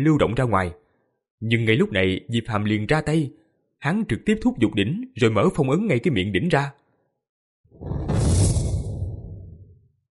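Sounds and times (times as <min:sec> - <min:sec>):
speech: 0:00.0 - 0:00.8, 0:01.4 - 0:06.8
loud whooshing roar with deep rumbling body and hissy top: 0:07.8 - 0:09.8.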